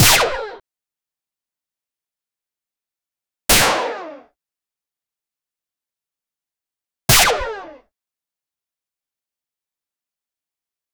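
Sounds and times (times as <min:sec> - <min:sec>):
FN SCAR assault rifle fire: 0:00.0 - 0:00.6, 0:07.1 - 0:07.6.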